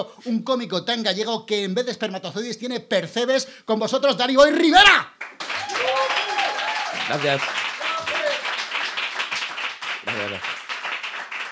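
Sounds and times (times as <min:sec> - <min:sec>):
speech: 0:00.0 - 0:05.4, 0:07.1 - 0:07.6, 0:10.2 - 0:10.6
live audience applause: 0:05.2 - 0:11.5.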